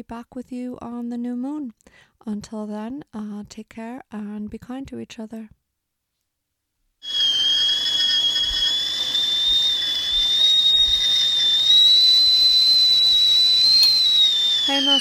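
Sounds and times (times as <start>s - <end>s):
speech: 0.0s - 5.6s, 14.7s - 14.9s
steam hissing: 7.0s - 14.9s
whistling kettle boiling: 7.0s - 14.9s.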